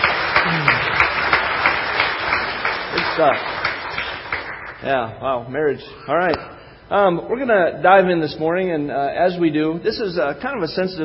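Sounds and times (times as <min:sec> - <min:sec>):
church congregation applauding during a morning service: 0:00.0 - 0:04.8
speech: 0:03.2 - 0:03.5, 0:04.8 - 0:11.0.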